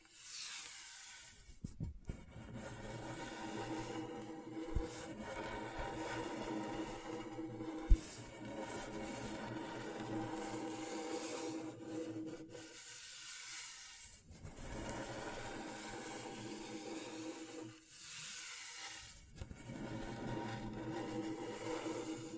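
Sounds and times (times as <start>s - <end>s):
scratchboard being scraped in long strokes: 0.2s - 22.3s.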